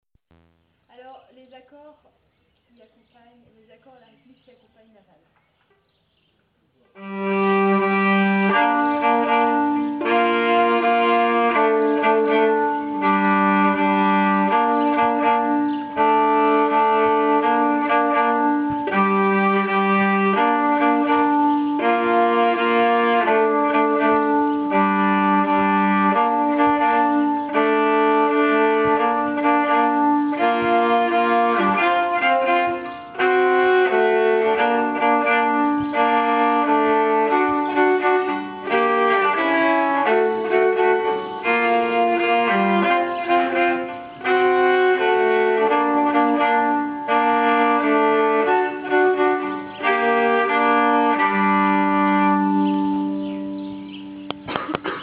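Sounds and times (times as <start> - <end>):
Finnish nyckelharpa chords: 0.3 - 1.1, 6.9 - 55.0.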